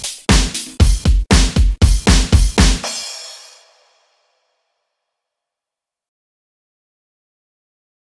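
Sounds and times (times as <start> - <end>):
music beat at 118 bpm: 0.0 - 4.0.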